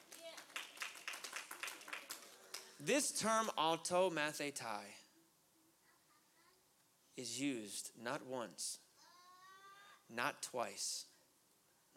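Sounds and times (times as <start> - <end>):
audience round of applause: 0.0 - 2.8
speech: 2.8 - 5.0, 7.2 - 8.8, 10.1 - 11.1.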